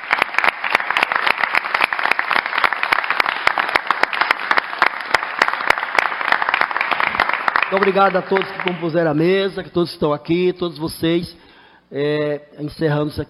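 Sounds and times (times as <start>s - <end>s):
applause: 0.0s - 9.2s
speech: 7.7s - 13.2s.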